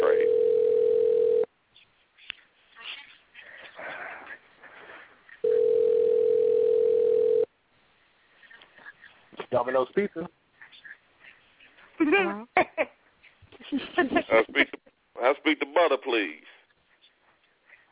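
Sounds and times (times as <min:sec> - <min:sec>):
telephone dial tone: 0:00.1 - 0:01.5, 0:05.4 - 0:07.5
speech: 0:09.7 - 0:10.4, 0:12.1 - 0:12.9, 0:14.0 - 0:16.5.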